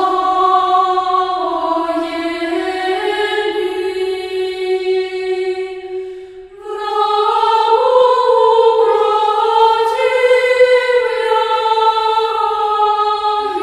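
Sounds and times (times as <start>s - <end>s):
children's choir singing: 0.0s - 13.6s.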